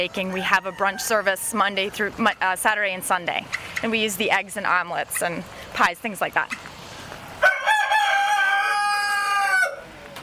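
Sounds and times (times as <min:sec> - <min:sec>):
speech: 0:00.0 - 0:06.7
rooster crowing: 0:00.2 - 0:01.6, 0:07.4 - 0:09.9.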